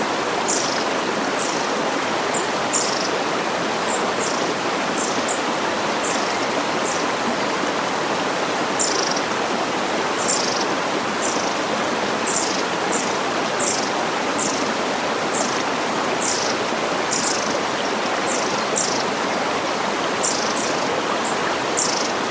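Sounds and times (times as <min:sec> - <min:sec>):
soft murmur of lake water: 0:00.0 - 0:22.3
birds singing: 0:00.4 - 0:03.2, 0:03.9 - 0:07.1, 0:08.8 - 0:09.4, 0:10.2 - 0:11.6, 0:12.3 - 0:15.6, 0:16.2 - 0:19.5, 0:20.2 - 0:22.2.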